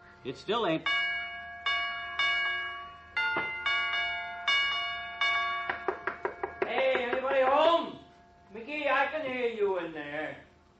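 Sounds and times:
speech: 0.2 - 1.1, 8.6 - 10.4
doorbell being pressed, chiming: 0.8 - 7.8.

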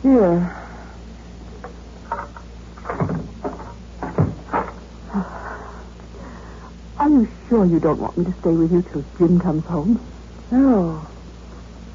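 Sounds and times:
speech: 0.1 - 0.6, 7.5 - 11.1
door opening: 2.1 - 4.8.

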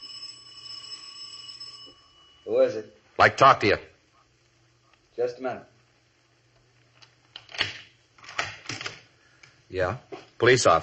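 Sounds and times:
apartment doorbell buzzing late at night: 0.0 - 2.8
speech: 2.5 - 3.9, 5.2 - 5.7, 9.7 - 10.8.

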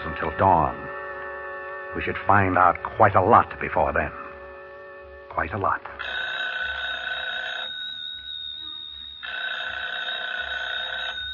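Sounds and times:
speech: 0.3 - 0.9, 2.0 - 4.2, 5.4 - 6.2
telephone ringing with electric bell tone: 6.0 - 11.3.

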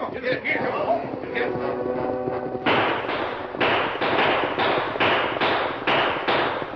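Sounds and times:
noisy rumble: 0.0 - 6.7
gunshots: 2.6 - 6.7.

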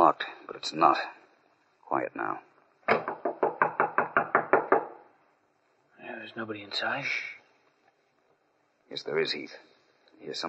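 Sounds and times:
speech: 0.1 - 1.2, 1.9 - 3.2, 6.3 - 7.4, 8.9 - 10.4
knocking on apartment door: 2.9 - 5.0.

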